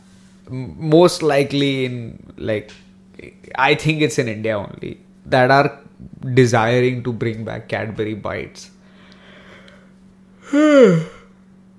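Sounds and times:
speech: 0:00.5 - 0:08.8, 0:10.5 - 0:11.2
person yawning: 0:10.4 - 0:11.4.

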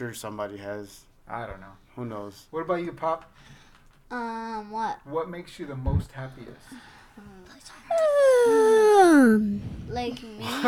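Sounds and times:
speech: 0:00.0 - 0:10.6
yawn: 0:07.9 - 0:09.9.

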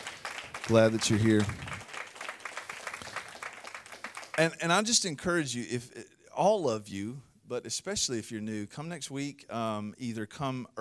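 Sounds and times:
church congregation applauding to welcome guests at a Sunday service: 0:00.0 - 0:04.8
speech: 0:00.7 - 0:01.7, 0:04.4 - 0:10.7.

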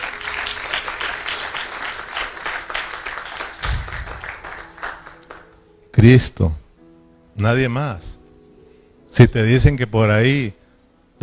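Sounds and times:
audience applause: 0:00.0 - 0:05.6
speech: 0:06.0 - 0:06.6, 0:07.4 - 0:08.2, 0:09.2 - 0:10.6.

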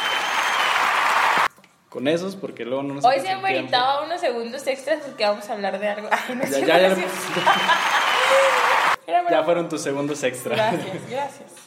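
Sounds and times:
applause: 0:00.0 - 0:01.5, 0:06.8 - 0:09.0
speech: 0:02.0 - 0:11.6
laughter: 0:06.1 - 0:09.0.

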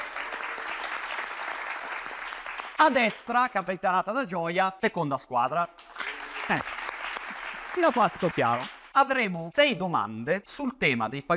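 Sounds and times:
audience applause: 0:00.0 - 0:03.3, 0:05.8 - 0:08.9
speech: 0:02.8 - 0:05.9, 0:06.5 - 0:06.7, 0:07.8 - 0:11.3.

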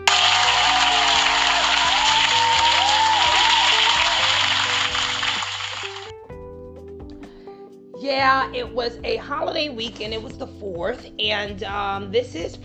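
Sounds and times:
round of applause: 0:00.0 - 0:06.1
speech: 0:08.4 - 0:12.6.

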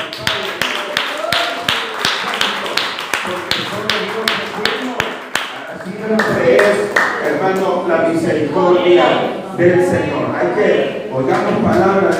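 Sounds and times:
loud applause: 0:00.0 - 0:07.2
speech: 0:07.9 - 0:12.1.

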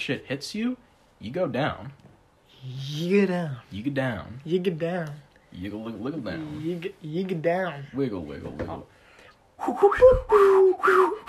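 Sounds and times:
speech: 0:00.0 - 0:09.0, 0:09.6 - 0:11.2
failed attempt at whistling: 0:09.6 - 0:11.2.

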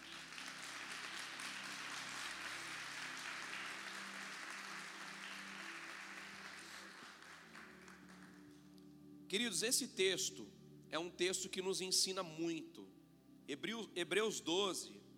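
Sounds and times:
audience applause: 0:00.0 - 0:08.5
speech: 0:09.3 - 0:15.0.

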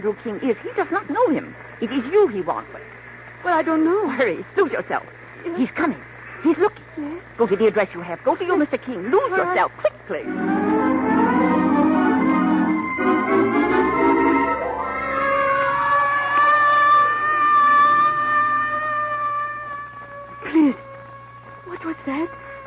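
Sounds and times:
speech: 0:00.0 - 0:10.8
ambulance siren wailing: 0:10.2 - 0:22.6.

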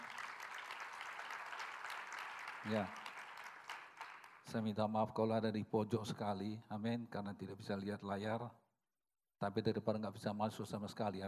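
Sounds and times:
audience applauding: 0:00.0 - 0:04.6
speech: 0:02.6 - 0:03.0, 0:04.5 - 0:08.6, 0:09.4 - 0:11.2.

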